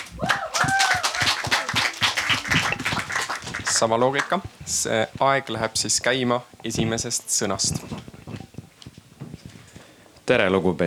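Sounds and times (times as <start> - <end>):
audience applause: 0.0 - 4.4
speech: 3.8 - 8.2, 10.3 - 10.8.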